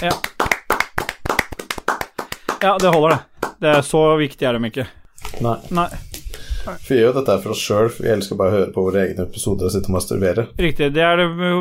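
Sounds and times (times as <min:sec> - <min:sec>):
speech: 0:00.0 - 0:00.3, 0:02.6 - 0:11.5
hand clapping: 0:00.0 - 0:04.0.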